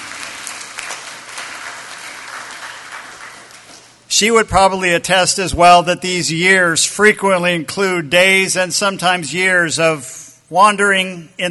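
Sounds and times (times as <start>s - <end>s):
audience applause: 0.0s - 4.0s
speech: 4.2s - 11.4s.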